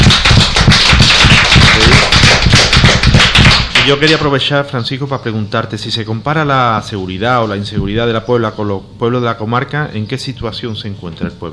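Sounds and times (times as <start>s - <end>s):
group applause: 0.0s - 4.3s
speech: 3.9s - 11.5s.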